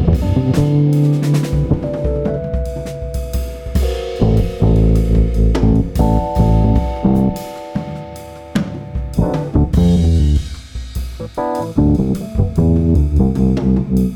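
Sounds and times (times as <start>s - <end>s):
bass guitar test: 0.0s - 14.1s.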